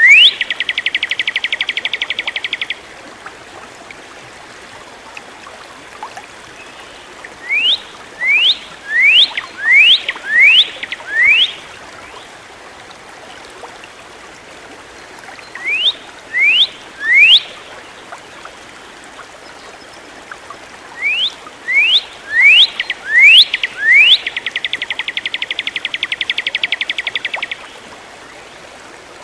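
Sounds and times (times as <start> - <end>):
bird song with rising whistles and dry trill: 0.0 - 2.8, 7.5 - 11.6, 15.5 - 17.6, 21.0 - 27.6.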